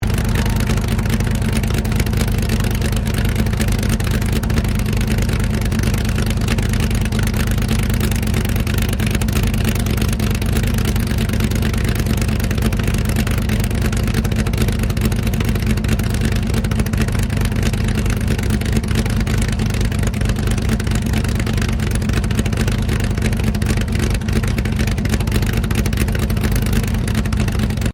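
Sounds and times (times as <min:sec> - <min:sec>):
Chevy C5R 7-litre engine exhaust idling, Army recruiting vehicle: 0:00.0 - 0:27.9.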